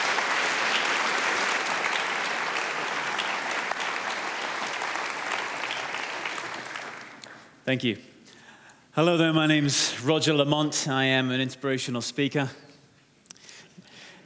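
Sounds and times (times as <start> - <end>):
audience applause welcoming a theatre company: 0.0 - 7.6
speech: 7.7 - 8.1, 9.0 - 12.7.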